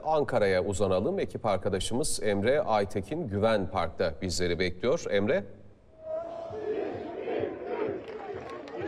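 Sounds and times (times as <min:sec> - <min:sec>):
speech: 0:00.0 - 0:05.6
football fans chanting and cheering in a park: 0:05.9 - 0:08.8.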